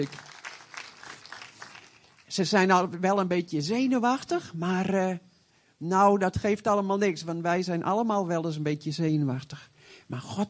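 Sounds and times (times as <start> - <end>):
speech: 0.0 - 0.3, 2.3 - 10.4
group applause: 0.0 - 2.3.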